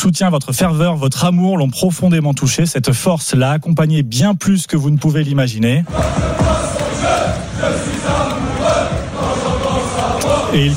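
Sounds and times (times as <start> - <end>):
speech: 0.0 - 8.2, 10.5 - 10.7
football supporters chanting: 5.8 - 10.7.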